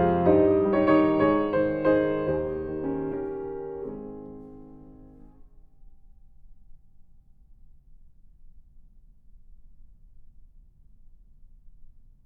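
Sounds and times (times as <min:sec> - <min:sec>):
German dance in A-flat major: 0:00.0 - 0:05.3.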